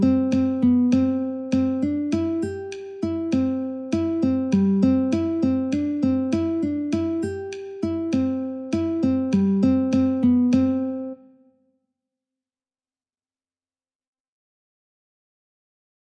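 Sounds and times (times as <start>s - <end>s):
metronome ticking: 0.0s - 11.1s
guitar playing a folk tune in C: 0.0s - 11.4s.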